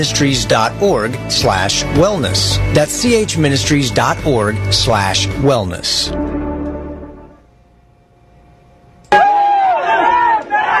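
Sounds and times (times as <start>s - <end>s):
speech: 0.0s - 6.4s
crowd cheering in celebration: 9.1s - 10.7s.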